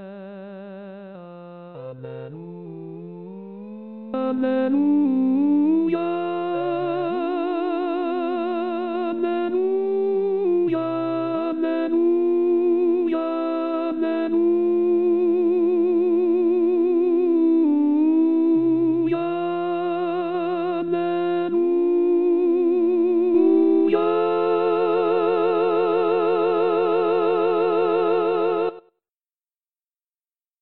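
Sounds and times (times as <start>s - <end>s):
tenors singing: 1.9s - 28.8s.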